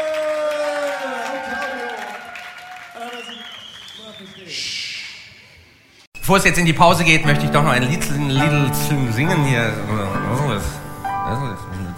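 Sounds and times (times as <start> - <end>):
audience applause: 0.0 - 4.7
speech: 6.3 - 11.9.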